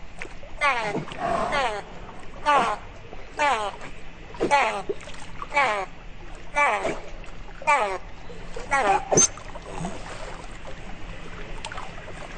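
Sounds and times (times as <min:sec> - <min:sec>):
dolphin calls and squeaks: 0:00.6 - 0:05.0, 0:06.6 - 0:09.8.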